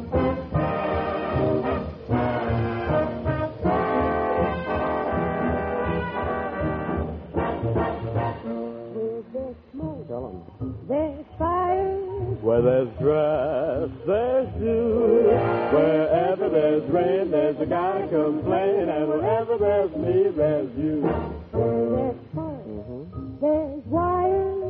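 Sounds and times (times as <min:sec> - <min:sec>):
bright trumpet with sustained brassy notes: 0:00.0 - 0:09.1, 0:15.1 - 0:22.6
swing band playing loudly: 0:00.0 - 0:24.6.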